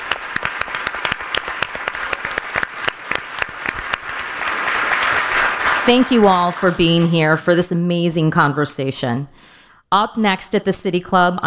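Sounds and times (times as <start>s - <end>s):
audience applause: 0.0s - 7.3s
speech: 5.9s - 11.4s.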